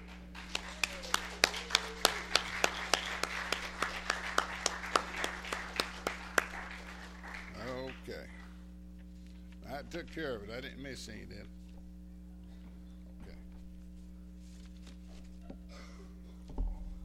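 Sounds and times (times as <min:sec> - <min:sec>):
audience applause for standing grandparents: 0:00.0 - 0:08.5
low hum: 0:00.0 - 0:17.0
speech: 0:10.0 - 0:11.6.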